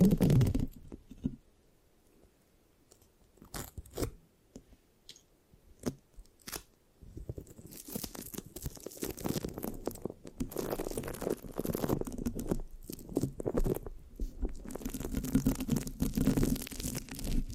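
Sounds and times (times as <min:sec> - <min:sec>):
scratching and sticky rubbing on a microphone: 0:00.0 - 0:01.4, 0:08.4 - 0:17.5.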